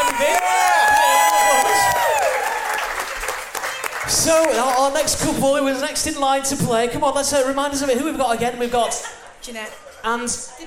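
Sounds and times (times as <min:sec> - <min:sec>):
game show studio audience applauding and cheering a contestant couple: 0:00.0 - 0:05.4
speech: 0:04.2 - 0:10.6.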